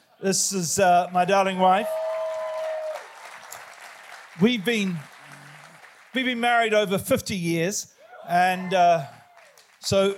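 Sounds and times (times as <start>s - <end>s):
speech: 0.2s - 2.0s, 4.4s - 5.1s, 6.1s - 9.2s, 9.8s - 10.1s
audience clapping: 0.9s - 6.9s, 9.0s - 10.1s.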